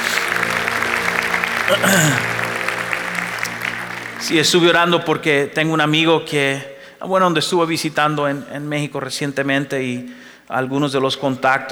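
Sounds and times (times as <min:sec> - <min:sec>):
audience applause: 0:00.0 - 0:05.5
speech: 0:01.7 - 0:02.3, 0:04.2 - 0:11.7.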